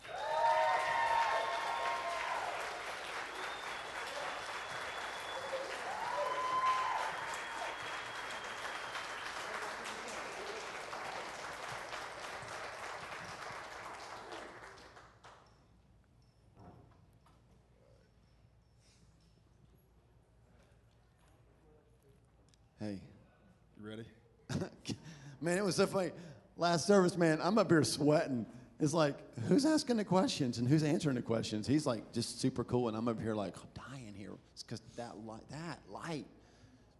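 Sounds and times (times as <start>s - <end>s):
audience applause welcoming a guest at a church service: 0.0s - 15.4s
speech: 22.8s - 23.1s, 25.4s - 34.0s, 34.6s - 36.4s.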